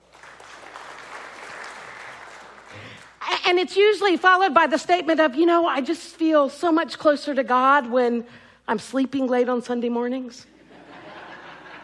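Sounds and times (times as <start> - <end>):
audience clapping: 0.0 - 3.2
speech: 3.5 - 10.5
laughter: 10.6 - 11.8.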